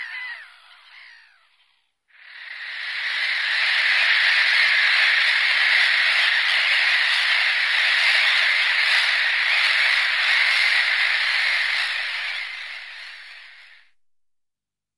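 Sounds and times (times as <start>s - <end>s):
black-headed gull harsh grating calls: 0.0s - 1.6s, 2.4s - 13.8s.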